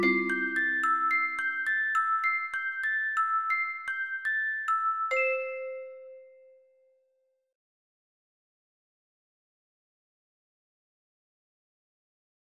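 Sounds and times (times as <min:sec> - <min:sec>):
Christmas song: 0:00.0 - 0:06.9.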